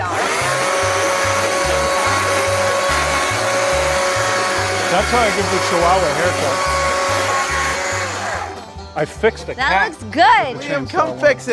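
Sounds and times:
power tool beveling used like a sander: 0:00.0 - 0:08.7
speech: 0:05.0 - 0:06.8, 0:09.0 - 0:11.5.

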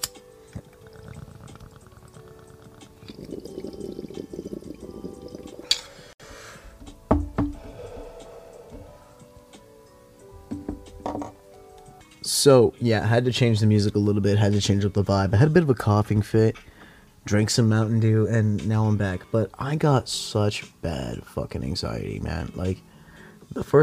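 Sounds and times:
water bubbling in a bong: 0:00.4 - 0:06.1
dull knocks: 0:06.8 - 0:07.8, 0:10.5 - 0:11.4
speech: 0:12.4 - 0:22.9, 0:23.6 - 0:23.8.

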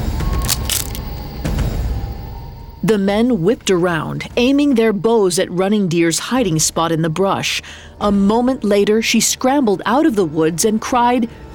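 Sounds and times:
twig snapping underfoot: 0:00.3 - 0:01.1
speech: 0:02.8 - 0:11.5.

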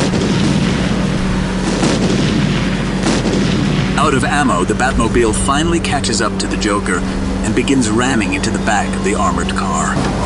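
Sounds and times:
series of large colorful balls exploding: 0:00.0 - 0:08.2
speech: 0:04.1 - 0:10.2.

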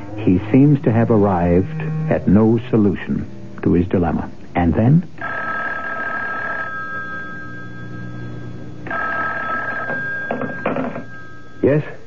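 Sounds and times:
speech: 0:00.2 - 0:05.3
telephone ringing: 0:05.2 - 0:12.0.

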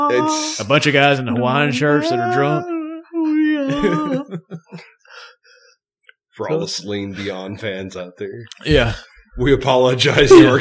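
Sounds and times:
person imitating a dying cat: 0:00.0 - 0:00.6, 0:01.8 - 0:04.3, 0:10.3 - 0:10.5
speech: 0:00.0 - 0:02.7, 0:03.7 - 0:05.3, 0:06.4 - 0:10.5
laughter: 0:03.6 - 0:04.9, 0:10.2 - 0:10.5.

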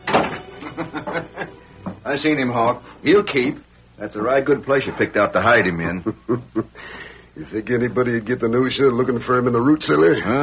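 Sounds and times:
door closing: 0:00.0 - 0:00.6
laughter: 0:00.5 - 0:01.6, 0:05.6 - 0:06.8
speech: 0:00.7 - 0:01.4, 0:02.1 - 0:10.4.

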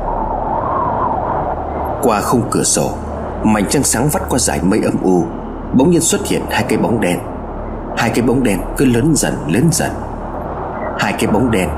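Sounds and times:
strong howling wind: 0:00.0 - 0:11.7
speech: 0:02.0 - 0:07.3, 0:08.0 - 0:10.0, 0:11.2 - 0:11.7.

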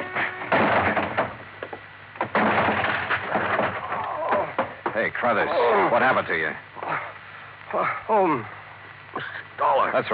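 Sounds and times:
locked office door being forced open: 0:00.1 - 0:01.5, 0:02.2 - 0:05.0
speech: 0:05.0 - 0:06.7, 0:07.7 - 0:08.6, 0:09.2 - 0:10.1.

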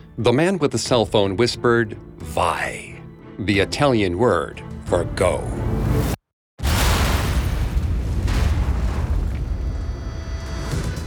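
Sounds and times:
speech: 0:00.2 - 0:06.2
13 barrels of TNT exploding in a tunnel beneath a road: 0:06.6 - 0:11.0.

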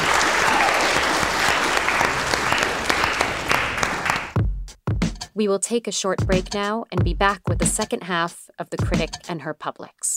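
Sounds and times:
audience applause: 0:00.0 - 0:04.4
speech: 0:05.4 - 0:10.1.

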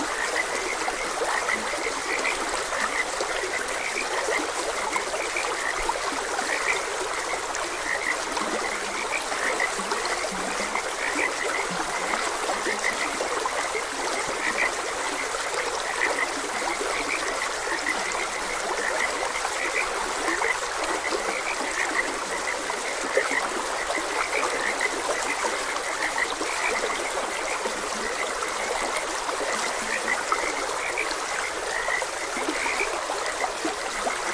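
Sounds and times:
gently flowing stream: 0:00.0 - 0:34.3
frogs calling in chorus: 0:00.1 - 0:34.3.

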